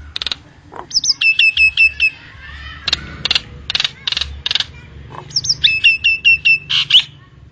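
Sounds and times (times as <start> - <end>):
Nias hill myna rasping and whistling: 0.7 - 3.0, 5.1 - 7.2.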